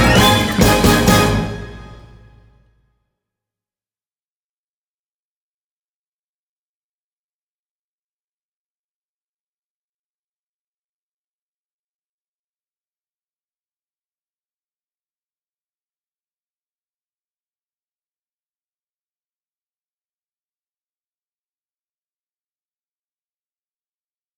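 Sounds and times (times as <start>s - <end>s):
instrumental Christmas medley without vocals: 0.0s - 2.5s.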